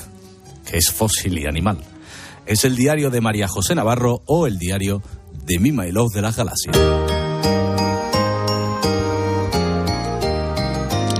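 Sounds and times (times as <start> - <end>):
speech: 0.7 - 1.9, 2.5 - 7.6
bells ringing: 6.8 - 11.1.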